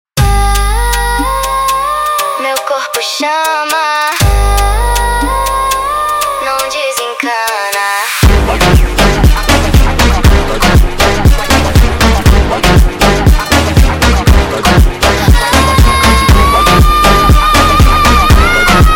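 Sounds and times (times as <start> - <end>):
sped-up montagem funk music: 0.2 - 18.9.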